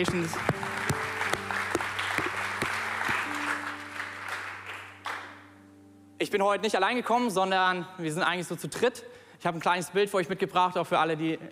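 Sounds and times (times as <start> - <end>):
speech: 0.0 - 0.6, 6.2 - 11.4
audience applause: 0.0 - 5.4.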